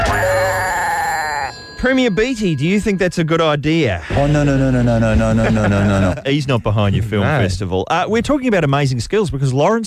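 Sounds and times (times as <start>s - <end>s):
alarm bell ringing: 0.1s - 5.4s
speech: 1.8s - 9.8s
laughter: 4.0s - 7.5s.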